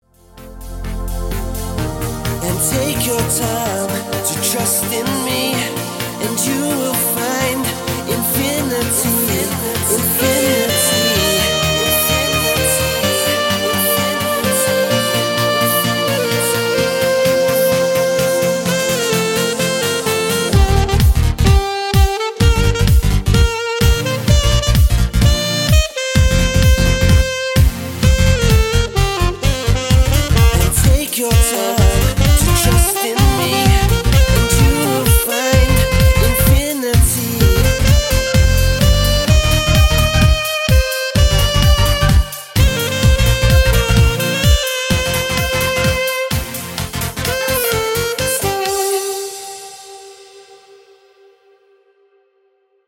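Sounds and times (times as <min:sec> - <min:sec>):
saxophone: 0:00.0 - 0:52.7.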